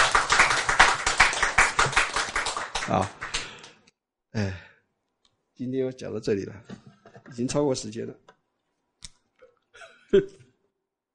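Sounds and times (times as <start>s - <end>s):
audience clapping hands rhythmically: 0.0s - 3.9s
speech: 2.9s - 3.2s, 4.4s - 4.6s, 5.6s - 8.2s, 10.1s - 10.4s.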